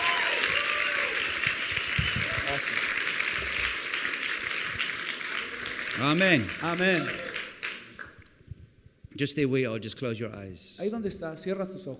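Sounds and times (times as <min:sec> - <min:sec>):
church congregation applauding in praise: 0:00.0 - 0:08.3
speech: 0:06.0 - 0:07.3, 0:09.2 - 0:11.9.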